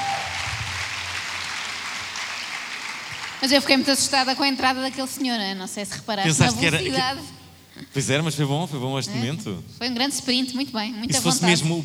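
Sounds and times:
applause: 0.0 - 4.1
speech: 3.4 - 11.8.

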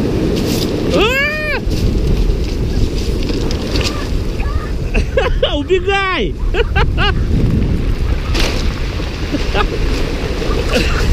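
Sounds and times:
Pacific Ocean waves surging up the shore in America: 0.0 - 11.1
wind: 0.0 - 11.1
brief high-pitched rising-and-falling vocal cry: 0.9 - 1.6
laughter: 4.8 - 7.2, 9.3 - 9.8, 10.6 - 11.1
speech: 5.7 - 8.1, 9.5 - 11.1.

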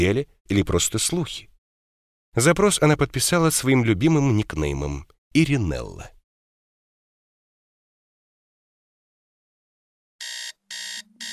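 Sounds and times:
speech: 0.0 - 1.5, 2.3 - 6.2
alarm clock ringing: 10.2 - 11.3.

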